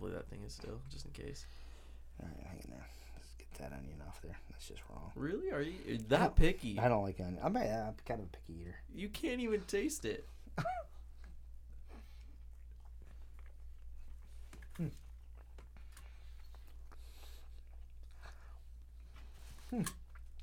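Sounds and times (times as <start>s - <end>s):
speech: 0.2s - 10.9s, 14.8s - 15.0s, 19.7s - 20.0s
smacking wet chewing of a big bite of food: 11.0s - 20.4s.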